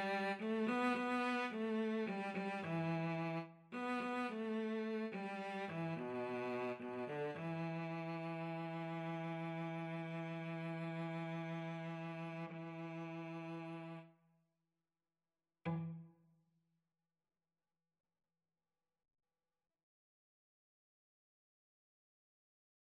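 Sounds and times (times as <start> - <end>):
cello: 0.0 - 14.1, 15.6 - 16.1.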